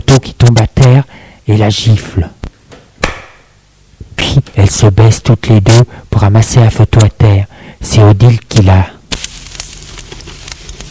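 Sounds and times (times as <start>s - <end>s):
speech: 0.1s - 0.7s, 1.5s - 2.4s, 4.7s - 9.0s
fire crackling in a fireplace: 9.1s - 10.8s.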